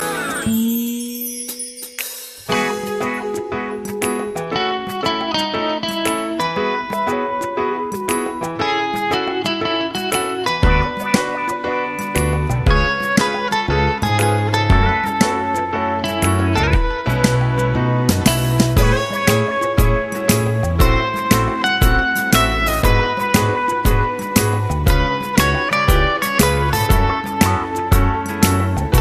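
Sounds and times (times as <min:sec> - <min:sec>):
instrumental music: 0:00.0 - 0:29.0.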